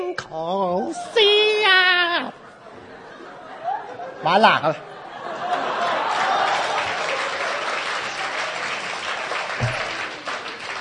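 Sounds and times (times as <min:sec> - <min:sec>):
speech: 0:00.3 - 0:01.2, 0:04.2 - 0:04.9
laughter: 0:02.0 - 0:08.6
audience applause after opera singing: 0:05.4 - 0:10.8.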